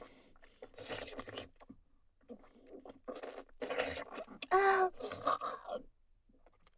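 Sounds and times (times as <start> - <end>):
wet sucking sounds for ASMR: 0.6 - 1.6, 2.7 - 5.8.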